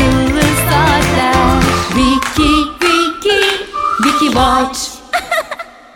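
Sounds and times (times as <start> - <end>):
vocal jingle: 0.1 - 5.1
laughter: 5.1 - 5.9.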